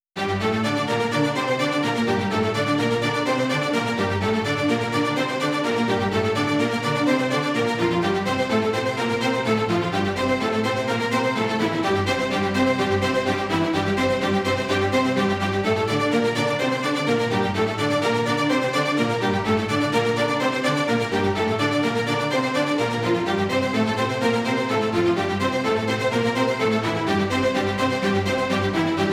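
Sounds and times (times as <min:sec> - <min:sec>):
tension violin strings: 0:00.2 - 0:29.1.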